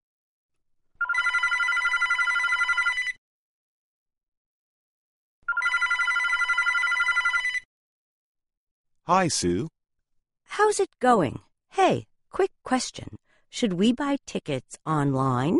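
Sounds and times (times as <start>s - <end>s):
telephone ringing: 1.0s - 3.2s, 5.4s - 7.7s
speech: 9.1s - 9.8s, 10.5s - 15.5s.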